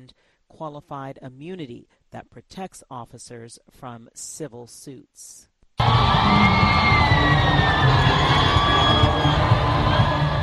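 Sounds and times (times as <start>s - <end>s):
speech: 0.1s - 8.0s
crowd cheering Pope Francis at Kinshasa's Ndolo Airport: 5.8s - 10.4s.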